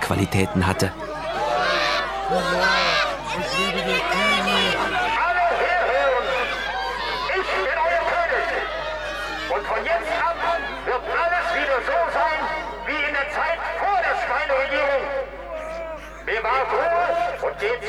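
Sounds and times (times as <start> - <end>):
higher-pitched cries from the crowd: 0.0 - 12.8
dense crowd of spectators shouting and clamoring as dogs rush at them: 0.0 - 17.8
laughter: 0.0 - 17.8
speech: 0.1 - 1.2, 2.3 - 4.5, 16.3 - 17.8.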